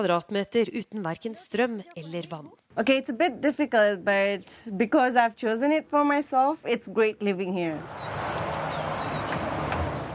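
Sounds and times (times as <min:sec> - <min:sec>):
speech: 0:00.0 - 0:08.3
birdsong in a village: 0:07.6 - 0:10.1.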